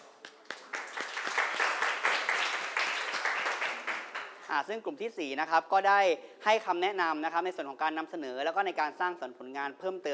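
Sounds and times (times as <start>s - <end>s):
applause: 0.0s - 4.5s
speech: 4.5s - 10.1s.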